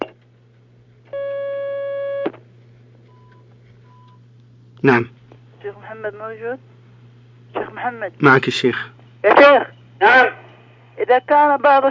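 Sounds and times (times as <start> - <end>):
low constant hum: 0.0 - 11.9
telephone line tone of incoming call: 1.1 - 2.3
speech: 4.8 - 6.7, 7.8 - 10.4, 11.0 - 11.9.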